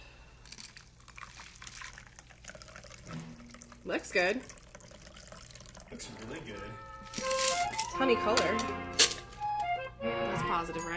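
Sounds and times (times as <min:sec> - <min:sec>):
cocktail being strained into a glass: 0:00.4 - 0:08.0
speech: 0:03.8 - 0:04.6, 0:05.9 - 0:09.1, 0:10.0 - 0:10.9.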